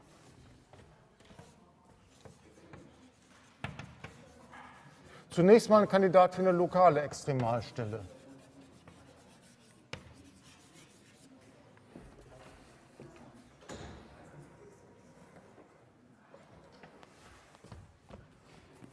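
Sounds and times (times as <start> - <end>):
handwriting during a maths lecture: 1.2 - 5.1, 7.4 - 11.5
speech: 5.3 - 8.2.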